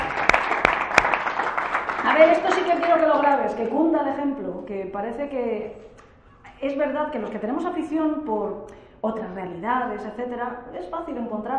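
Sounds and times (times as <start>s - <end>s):
applause: 0.0s - 3.8s
speech: 2.1s - 5.9s, 6.6s - 11.5s.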